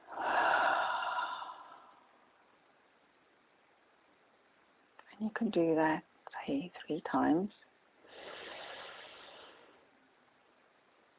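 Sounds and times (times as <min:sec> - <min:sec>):
slow deep breath: 0:00.0 - 0:02.2, 0:08.0 - 0:09.9
speech: 0:05.2 - 0:07.7.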